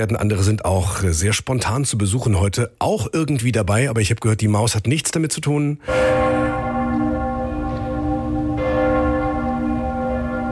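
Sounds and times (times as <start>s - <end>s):
speech: 0.0s - 6.5s
bells of Cologne Cathedral ringing: 5.8s - 10.5s.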